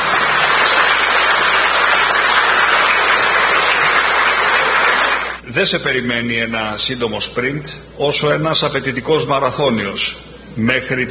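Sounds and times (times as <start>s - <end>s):
audience applause: 0.0s - 5.4s
speech: 5.6s - 11.0s.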